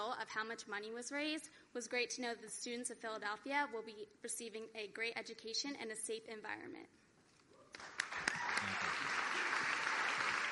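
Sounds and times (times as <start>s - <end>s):
speech: 0.1s - 7.0s
audience applause at a contestant event for a student education fundraiser: 7.8s - 10.5s.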